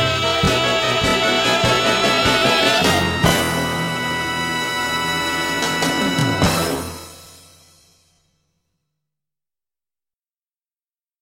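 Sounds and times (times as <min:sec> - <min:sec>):
people singing along: 0:00.0 - 0:06.8.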